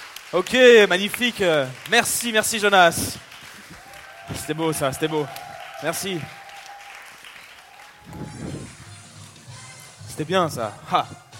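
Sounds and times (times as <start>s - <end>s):
audience applause: 0.0s - 8.8s
people cheering: 0.0s - 9.0s
speech: 0.3s - 3.3s, 4.5s - 6.4s, 10.2s - 11.2s.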